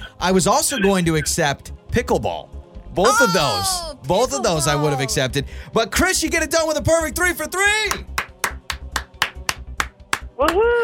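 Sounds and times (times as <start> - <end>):
speech: 0.2 - 8.1, 10.4 - 10.8
slow clap: 7.9 - 10.7.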